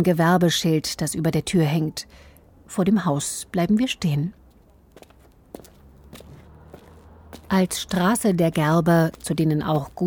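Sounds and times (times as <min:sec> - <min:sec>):
speech: 0:00.0 - 0:04.4, 0:07.5 - 0:10.0
footsteps walking along a street: 0:04.1 - 0:10.0.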